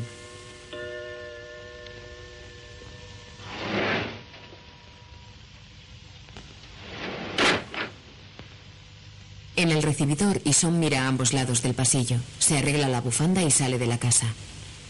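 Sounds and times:
brief steady hum: 0:00.0 - 0:14.8
sliding frosted glass door opening: 0:03.4 - 0:04.6, 0:06.7 - 0:08.1
speech: 0:09.6 - 0:14.6.

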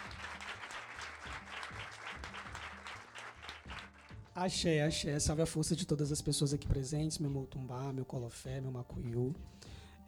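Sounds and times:
group applauding: 0:00.0 - 0:04.5
speech: 0:04.4 - 0:09.6.

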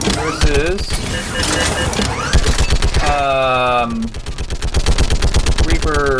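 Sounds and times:
speech: 0:00.3 - 0:02.2
mounted gun firing automatic bursts in a video game shooting gallery: 0:00.4 - 0:06.1.

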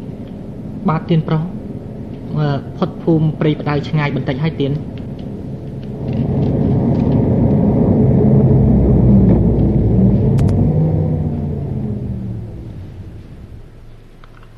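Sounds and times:
speech: 0:00.8 - 0:01.6, 0:02.3 - 0:04.9
car engine rumbling while driving, then stalling: 0:05.0 - 0:14.5.

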